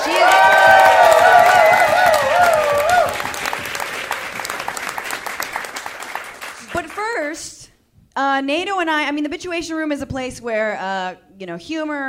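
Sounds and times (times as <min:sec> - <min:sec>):
shrill whistle-like cheers: 0:00.0 - 0:03.7
live audience clapping at a comedy and political organizing event: 0:00.0 - 0:07.2
speech: 0:08.4 - 0:12.0.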